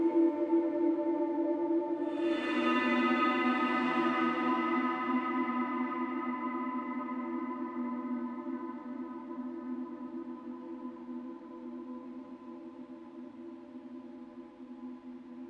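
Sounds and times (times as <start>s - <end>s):
temple ambient music: 0.0s - 10.5s.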